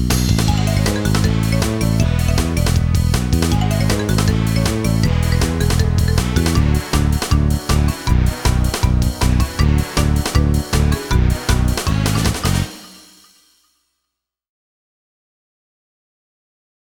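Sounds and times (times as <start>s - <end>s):
race losing fanfare: 0.5s - 13.0s.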